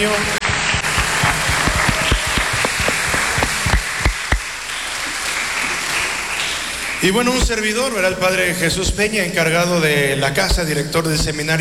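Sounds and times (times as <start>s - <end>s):
speech: 0.0s - 0.4s, 7.0s - 11.5s
loud applause: 0.0s - 8.0s.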